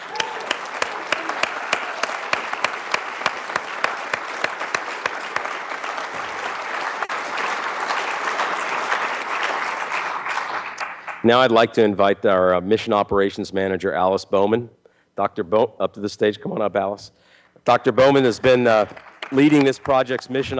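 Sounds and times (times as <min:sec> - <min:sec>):
crowd applauding: 0:00.0 - 0:11.3, 0:18.2 - 0:20.5
speech: 0:11.2 - 0:20.5.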